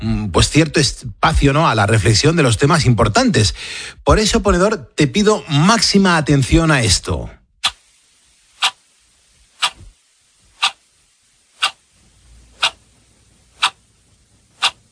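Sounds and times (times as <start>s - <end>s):
speech: 0.0s - 7.4s
clock ticking: 8.6s - 8.8s, 9.6s - 9.9s, 10.6s - 10.9s, 11.6s - 11.8s, 12.6s - 12.8s, 13.6s - 13.9s, 14.6s - 14.9s.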